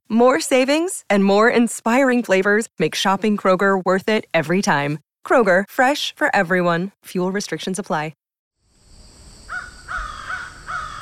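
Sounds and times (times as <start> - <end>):
speech: 0.1 - 8.2
crow cawing: 9.5 - 11.0.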